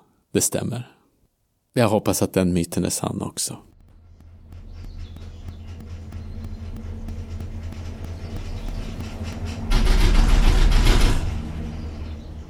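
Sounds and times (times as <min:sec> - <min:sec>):
speech: 0:00.3 - 0:01.0, 0:01.8 - 0:03.8
cable car cabin humming on its line over river: 0:03.8 - 0:12.4.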